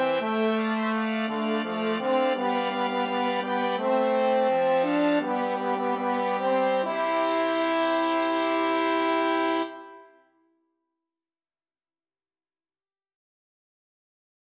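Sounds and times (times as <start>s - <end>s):
hornpipe tune: 0.0s - 10.2s.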